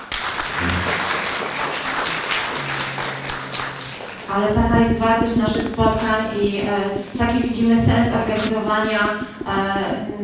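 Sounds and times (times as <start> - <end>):
audience applause: 0.0 - 6.4
speech: 4.3 - 10.2.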